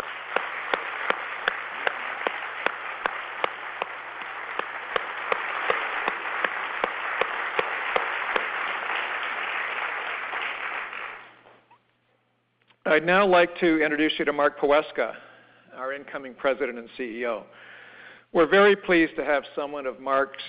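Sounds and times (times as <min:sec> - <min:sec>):
audience applause: 0:00.0 - 0:11.4
speech: 0:12.9 - 0:15.3, 0:16.0 - 0:17.7, 0:18.3 - 0:20.4.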